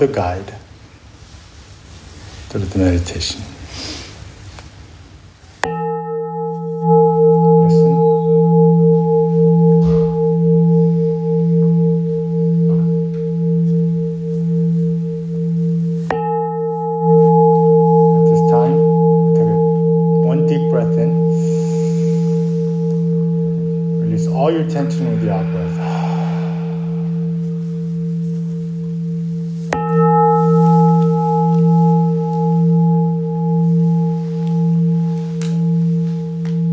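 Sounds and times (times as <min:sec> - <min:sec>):
speech: 0:00.0 - 0:00.7, 0:02.5 - 0:04.0
meditation bell ringing: 0:05.6 - 0:36.7.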